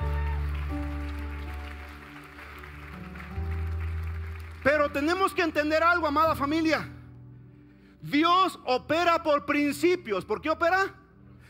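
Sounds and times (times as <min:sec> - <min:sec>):
audience applause: 0:00.0 - 0:05.3
speech: 0:04.9 - 0:07.0, 0:08.0 - 0:11.0.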